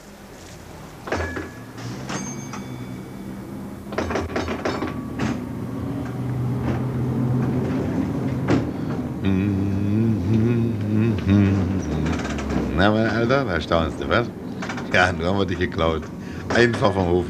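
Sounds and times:
tram railcar motor hum: 0.0 - 16.4
mechanical clunks and switching noises of a tram railcar being started: 1.0 - 6.9
speech: 12.8 - 17.2.

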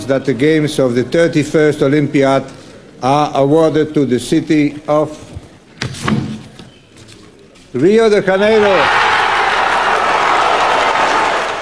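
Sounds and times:
speech: 0.1 - 5.3, 7.7 - 9.0
Brazilian delegation crowd cheering in Copenhagen: 8.5 - 11.5.

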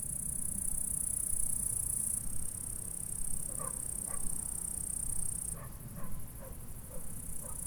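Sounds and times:
insect stridulation chorus in a meadow at Saint-François-de-Sales, France: 0.1 - 7.6.

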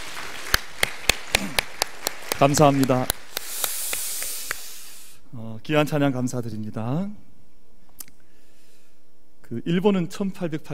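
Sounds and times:
audience applause: 0.0 - 4.8
speech: 2.4 - 3.2, 5.6 - 7.3, 9.5 - 10.7.

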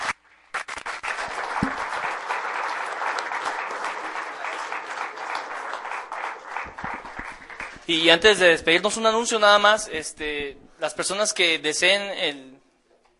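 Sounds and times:
audience applause: 0.6 - 7.9
speech: 7.9 - 12.5.

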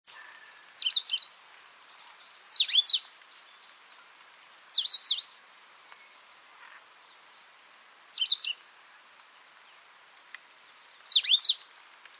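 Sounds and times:
Coal-crested Finch Charitospiza eucosma calling: 0.2 - 1.4, 2.0 - 3.1, 4.7 - 6.2, 8.1 - 8.7, 10.8 - 12.0.

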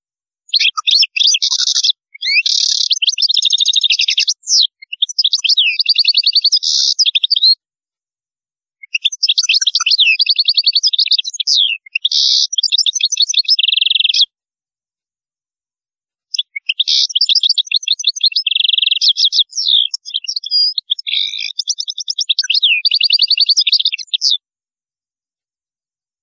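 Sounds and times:
European goldfinch twittering: 0.5 - 7.6, 9.0 - 14.2, 16.3 - 24.4.

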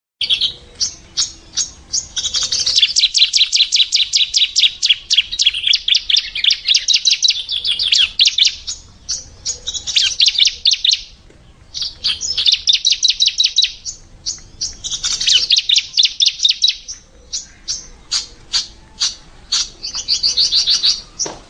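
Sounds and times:
Bar-winged Prinia calls: 0.2 - 21.4.

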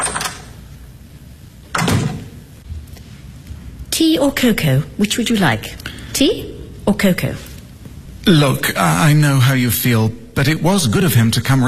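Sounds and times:
low hum: 0.0 - 11.6
back door swinging shut: 1.7 - 2.4
speech: 4.0 - 7.5, 8.2 - 11.6.

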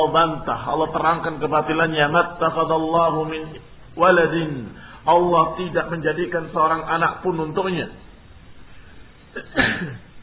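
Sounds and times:
speech: 0.0 - 8.0, 9.3 - 10.0
sneeze: 9.4 - 10.1.

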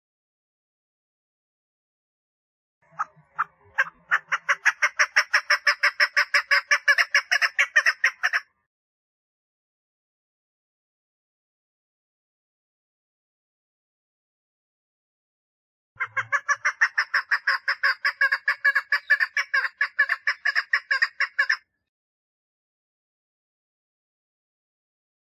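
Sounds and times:
partridge grating calls: 2.8 - 8.5, 16.0 - 21.6.

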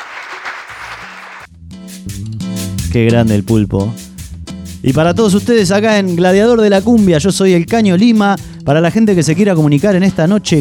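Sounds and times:
applause: 0.0 - 1.5
speech: 2.1 - 4.0, 4.8 - 10.5.

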